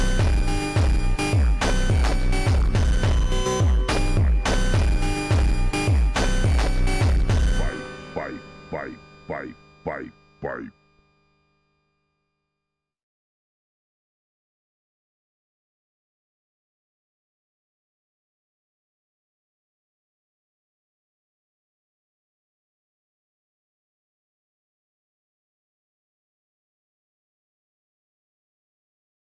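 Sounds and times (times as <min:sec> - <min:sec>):
automotivo super slowed funk: 0:00.0 - 0:10.7.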